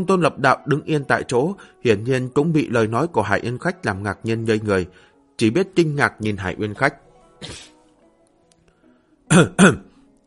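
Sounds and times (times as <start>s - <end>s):
speech: 0.0s - 7.7s, 9.3s - 9.9s
person's dry coughs behind a covered mouth: 7.4s - 7.8s, 9.3s - 9.9s.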